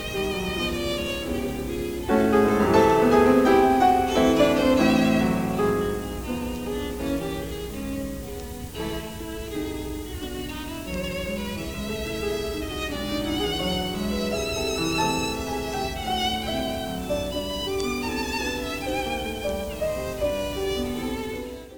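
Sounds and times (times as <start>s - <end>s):
sonata for violin and piano: 0.0s - 21.7s.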